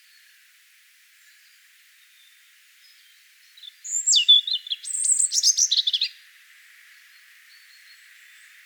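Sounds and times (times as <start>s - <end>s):
European robin singing: 3.6s - 6.1s.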